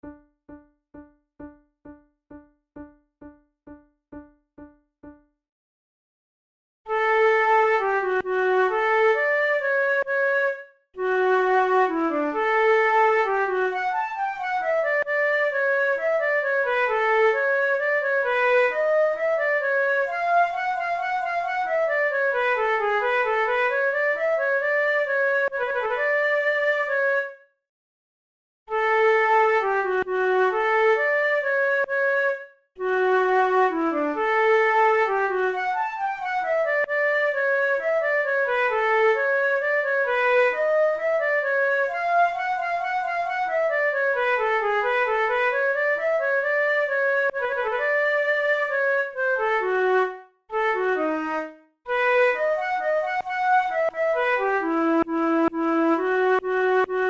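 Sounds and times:
flute duet minuet: 6.9 - 27.5, 28.7 - 57.0.

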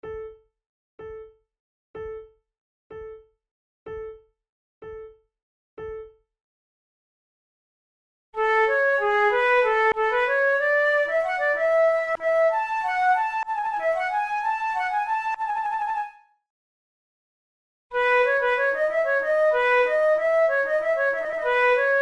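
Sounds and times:
two flutes playing a gigue in Italian manner: 8.4 - 16.2, 18.0 - 22.0.

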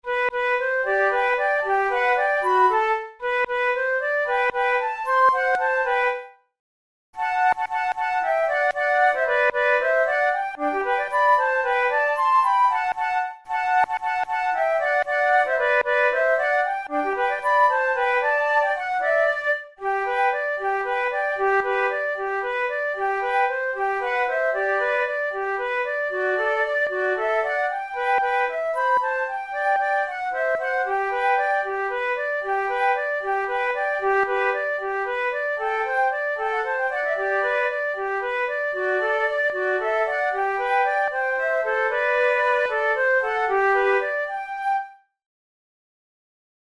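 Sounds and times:
flute duet: 0.0 - 6.5, 7.2 - 45.2.

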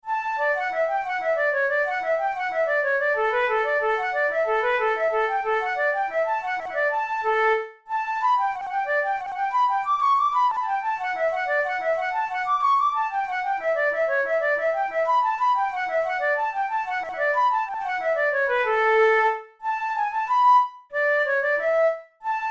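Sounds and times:
transverse flute capriccio: 0.0 - 22.5.

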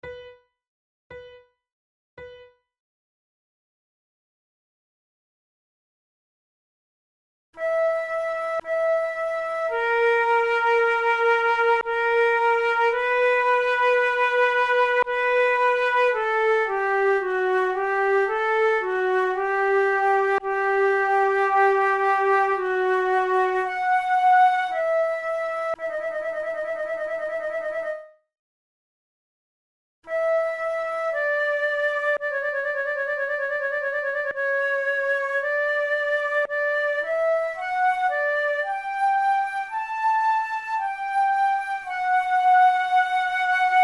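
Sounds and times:
slow largo flute tunes: 7.6 - 28.2, 30.1 - 43.8.

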